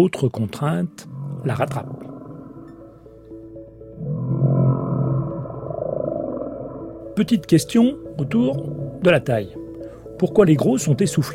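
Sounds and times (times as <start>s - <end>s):
speech: 0.0s - 2.1s, 7.2s - 9.6s, 10.2s - 11.3s
whale vocalization: 1.0s - 3.3s, 3.9s - 7.2s.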